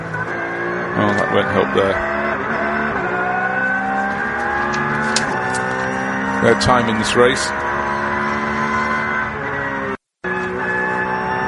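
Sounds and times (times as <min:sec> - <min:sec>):
BMW race car engine droning in the pit lane: 0:00.0 - 0:11.4
speech: 0:01.0 - 0:02.2, 0:06.4 - 0:07.6.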